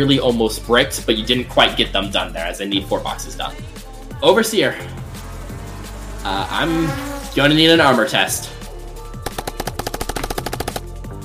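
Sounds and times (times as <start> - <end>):
speech: 0.0 - 5.0, 6.2 - 8.6
machine gun fire from assault drone: 9.2 - 10.9.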